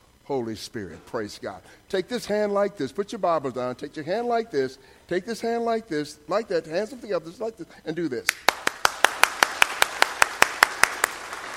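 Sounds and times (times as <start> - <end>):
speech: 0.3 - 8.6
audience clapping in rhythm: 8.3 - 11.5.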